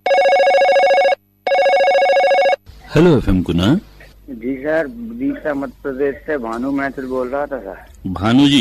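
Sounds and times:
telephone ringing for an incoming call: 0.0 - 2.6
speech: 2.9 - 8.6.

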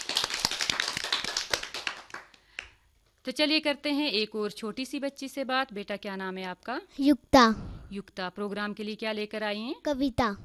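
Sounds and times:
group of people clapping: 0.0 - 2.8
speech: 3.2 - 10.4.

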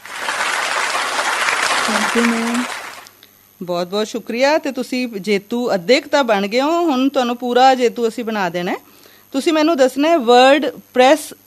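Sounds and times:
audience clapping for a quiz contestant: 0.0 - 3.1
speech: 1.9 - 2.8, 3.6 - 11.4.

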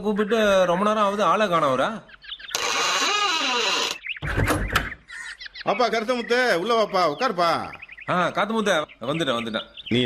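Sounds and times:
speech: 0.0 - 2.2, 5.6 - 10.0
door being opened, creaking: 2.5 - 5.0.

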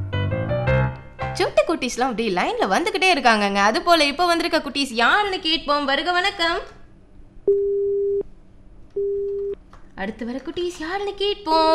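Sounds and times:
speech: 1.4 - 6.8, 7.5 - 7.7, 10.0 - 11.7
faint noise: 1.4 - 11.7
telephone busy tone: 9.0 - 9.6.

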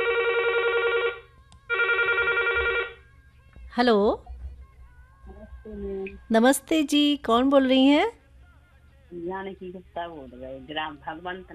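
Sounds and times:
telephone ringing with a steady electronic double-burst tone: 0.0 - 3.0
speech: 3.8 - 4.3, 5.7 - 8.2, 9.1 - 11.5.

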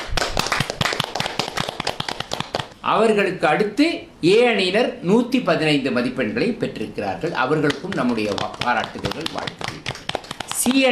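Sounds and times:
small gathering clapping for the winning quiz team: 0.0 - 2.8, 7.6 - 10.8
speech: 2.9 - 9.7, 10.6 - 10.8.

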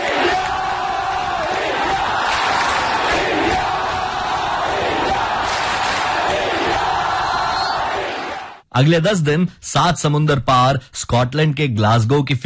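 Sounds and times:
large crowd chanting slogans: 0.0 - 8.6
speech: 8.8 - 12.4.

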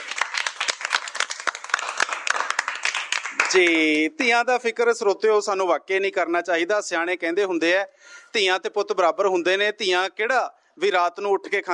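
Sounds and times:
hearty audience applause: 0.0 - 3.7
speech: 3.4 - 11.7.

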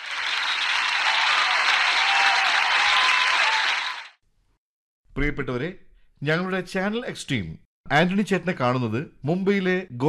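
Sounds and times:
show audience applause greeting a guest and his interviewer: 0.0 - 4.2
speech: 5.2 - 10.0.

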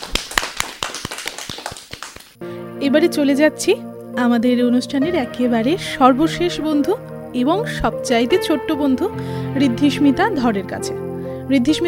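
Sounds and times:
sparse hand claps for a young child after a poem recitation: 0.0 - 2.4
speech: 2.8 - 11.8.

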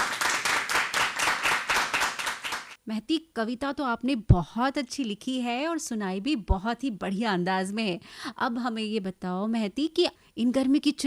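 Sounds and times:
children clapping: 0.0 - 2.8
speech: 2.9 - 11.0.

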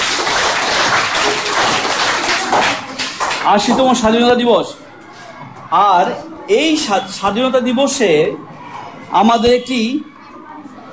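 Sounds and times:
audience clapping at an 80th Independence Day gathering: 0.0 - 3.9
speech: 3.4 - 4.8, 5.7 - 8.5, 9.1 - 10.1.

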